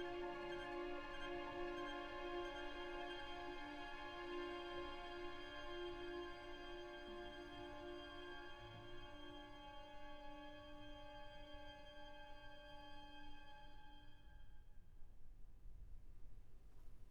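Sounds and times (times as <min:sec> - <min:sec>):
violin concerto with arpeggiato violin: 0:00.0 - 0:13.6.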